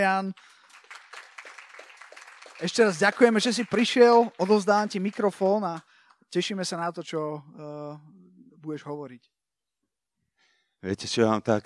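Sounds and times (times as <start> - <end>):
speech: 0.0 - 0.6, 2.6 - 9.3, 10.8 - 11.6
audience applause: 0.3 - 5.8.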